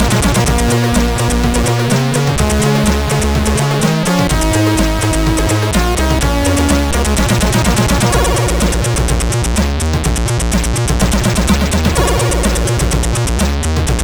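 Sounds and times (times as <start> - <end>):
SID CSG8580R5 sound chip noise: 0.0 - 14.0.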